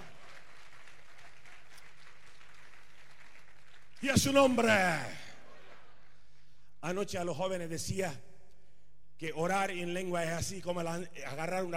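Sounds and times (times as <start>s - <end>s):
audience applause: 0.0s - 4.0s
speech: 4.0s - 5.2s, 6.8s - 8.3s, 9.2s - 11.7s.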